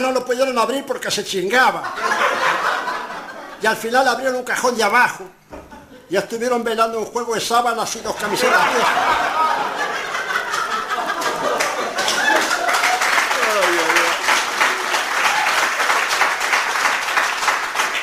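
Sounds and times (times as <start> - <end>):
speech: 0.2 - 2.7, 3.6 - 5.5, 6.1 - 9.8
laughter: 1.8 - 3.7, 8.2 - 15.4
audience applause: 8.4 - 18.0.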